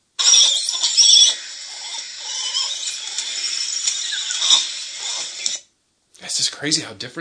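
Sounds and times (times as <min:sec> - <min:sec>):
langur monkeys squeaking and squealing: 0:00.2 - 0:05.6
speech: 0:06.4 - 0:07.1.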